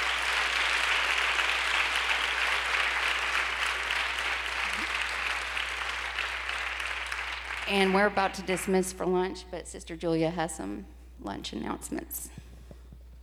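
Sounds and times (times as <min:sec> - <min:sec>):
round of applause from audience: 0:00.0 - 0:08.6
speech: 0:07.7 - 0:12.4.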